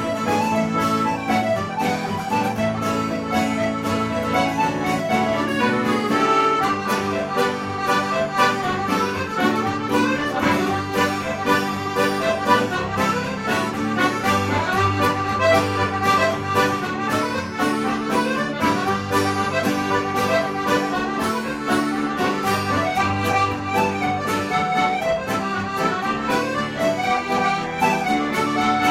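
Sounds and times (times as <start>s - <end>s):
Irish band playing a reel live: 0.0s - 28.8s.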